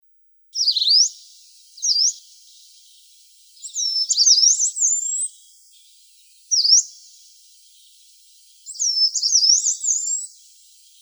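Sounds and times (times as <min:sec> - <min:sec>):
yellow-browed warbler singing high thin sliding whistles: 0:00.6 - 0:02.7, 0:03.6 - 0:05.2, 0:08.8 - 0:10.5.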